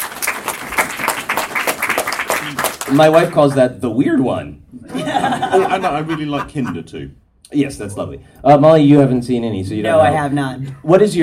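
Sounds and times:
audience applause: 0.0s - 3.3s
speech: 2.9s - 11.2s
laughter: 4.8s - 7.1s.

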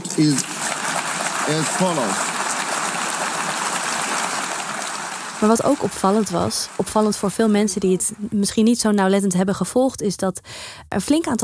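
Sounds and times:
applause in an assembly hall: 0.0s - 8.2s
speech: 0.2s - 0.6s, 1.5s - 2.3s, 5.4s - 11.4s.

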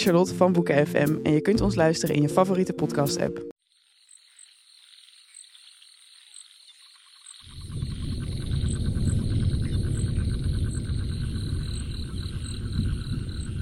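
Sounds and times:
speech: 0.0s - 3.5s
crickets chirping in a quiet forest: 3.6s - 13.6s.

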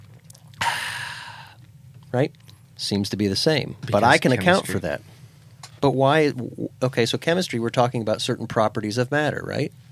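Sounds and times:
person sipping water: 0.0s - 1.7s
speech: 2.1s - 5.1s, 5.8s - 9.9s.

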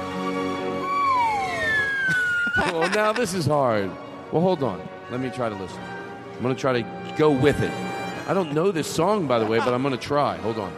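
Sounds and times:
slide whistle solo: 0.7s - 2.9s
laughter: 2.0s - 3.6s, 8.3s - 10.3s
speech: 2.6s - 10.7s.

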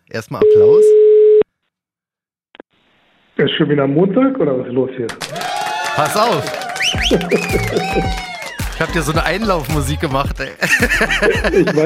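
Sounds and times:
speech: 0.1s - 1.1s, 3.4s - 11.8s
telephone line tone while calling: 0.4s - 1.4s
laughter: 6.9s - 9.7s, 10.6s - 11.8s.

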